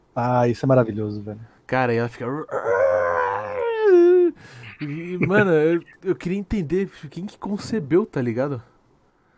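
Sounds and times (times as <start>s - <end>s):
speech: 0.2s - 3.0s, 4.3s - 8.7s
snake screaming film sound effect: 2.5s - 3.9s.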